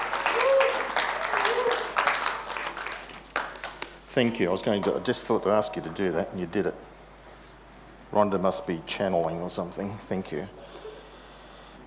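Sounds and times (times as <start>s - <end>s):
audience applause: 0.0s - 4.0s
whoops and voices: 0.2s - 2.0s
speech: 4.2s - 6.9s, 8.1s - 10.6s.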